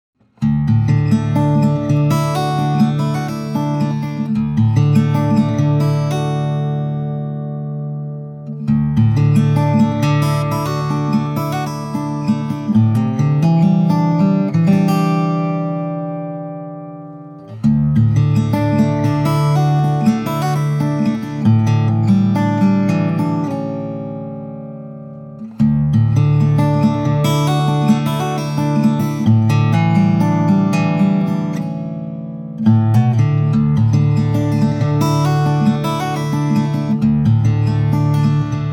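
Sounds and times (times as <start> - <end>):
guitar: 0.2 - 38.7.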